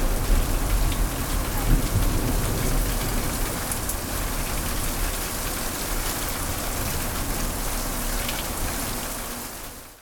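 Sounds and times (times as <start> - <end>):
thunderstorm: 0.0 - 5.0
heavy rain: 0.0 - 10.0.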